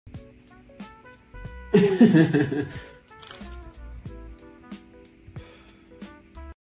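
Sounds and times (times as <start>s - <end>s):
fake office laughter: 1.8s - 2.9s.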